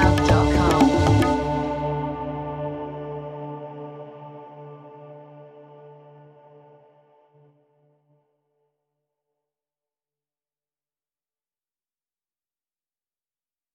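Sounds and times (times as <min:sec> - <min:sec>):
bongo drums: 0:00.0 - 0:01.9.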